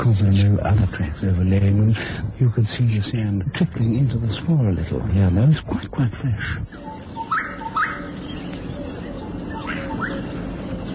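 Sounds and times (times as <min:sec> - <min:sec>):
speech: 0:00.0 - 0:06.9
gorgeous bushshrike calling from a thorn tree: 0:06.6 - 0:10.9.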